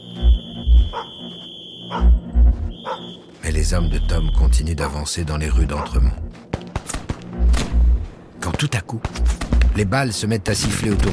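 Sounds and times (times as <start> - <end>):
dog barking in deep punchy woofs: 0.9 - 1.2, 1.9 - 2.2, 2.8 - 3.1, 5.7 - 6.0
speech: 0.9 - 6.6, 8.6 - 11.1.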